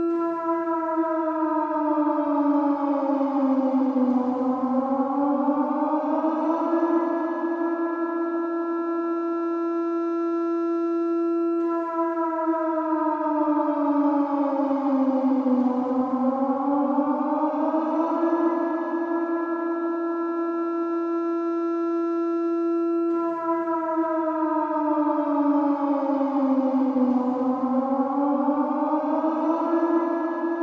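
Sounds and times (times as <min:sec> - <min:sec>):
war siren alert alarm: 0:00.0 - 0:30.6.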